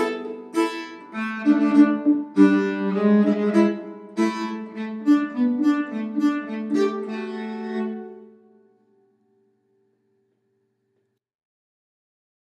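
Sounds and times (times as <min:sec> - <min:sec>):
nyckelharpa playing a polska: 0:00.0 - 0:08.4.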